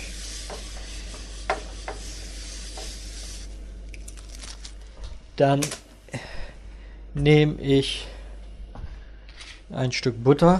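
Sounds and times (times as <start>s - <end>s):
wiping through a frying pan: 0.0s - 3.5s
speech: 5.4s - 6.2s, 7.2s - 8.1s, 9.7s - 10.5s.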